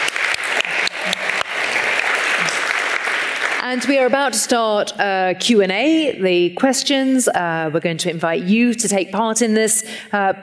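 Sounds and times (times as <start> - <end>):
audience applause: 0.0 - 4.1
speech: 3.7 - 10.4.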